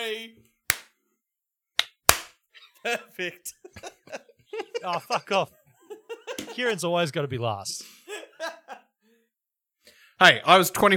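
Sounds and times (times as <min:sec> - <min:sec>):
speech: 0:00.1 - 0:00.5, 0:02.8 - 0:05.6, 0:06.6 - 0:08.0, 0:10.2 - 0:10.9
group hand claps: 0:00.7 - 0:00.9, 0:01.8 - 0:02.4
laughter: 0:02.6 - 0:09.1.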